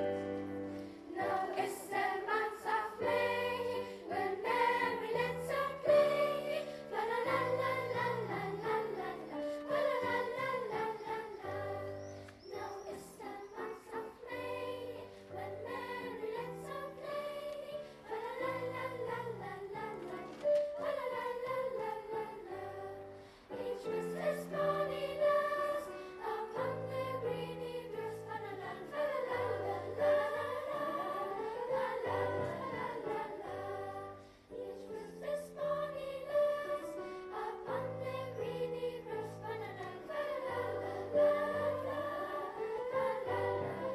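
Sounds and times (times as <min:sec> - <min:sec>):
lower-school choir singing: 0:00.1 - 0:43.9.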